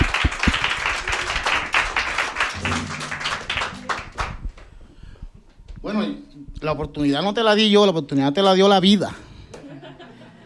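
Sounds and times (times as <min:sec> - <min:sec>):
audience applause: 0:00.0 - 0:04.6
speech: 0:06.6 - 0:09.2
laughter: 0:09.5 - 0:10.4.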